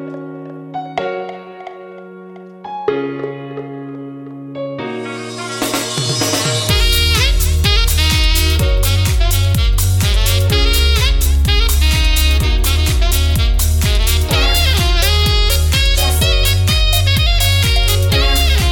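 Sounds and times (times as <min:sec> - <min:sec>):
pop jazz Ibiza saxophone: 0:04.8 - 0:18.7.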